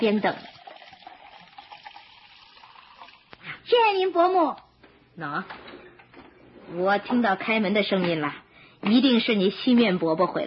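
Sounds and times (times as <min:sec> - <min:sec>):
speech: 0:00.0 - 0:00.6, 0:03.7 - 0:04.6, 0:05.2 - 0:05.7, 0:06.7 - 0:10.4
honey tea pouring into a cup: 0:00.0 - 0:03.4.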